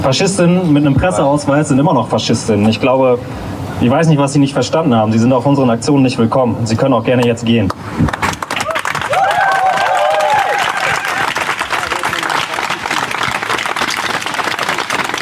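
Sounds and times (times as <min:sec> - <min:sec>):
speech: 0:00.0 - 0:08.1
crowd clapping: 0:07.7 - 0:15.2.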